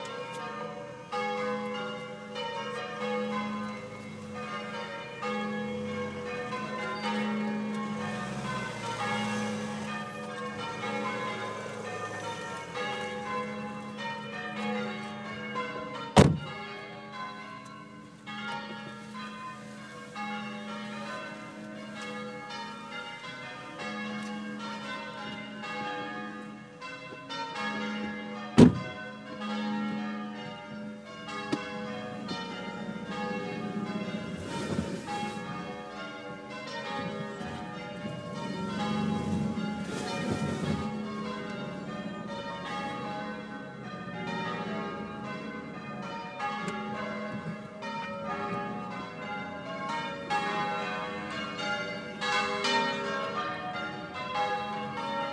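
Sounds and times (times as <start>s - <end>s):
church bells heard from outside: 0.0s - 55.3s.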